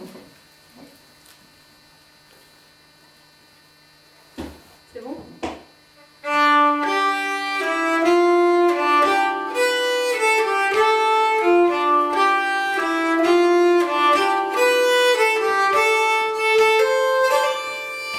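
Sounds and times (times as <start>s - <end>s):
nyckelharpa playing a polska: 6.0s - 18.1s.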